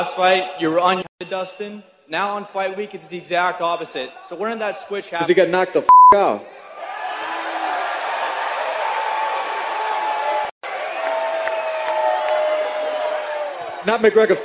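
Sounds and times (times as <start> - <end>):
speech: 0.0 - 6.9, 13.8 - 14.4
press conference audience cheering: 6.5 - 14.4.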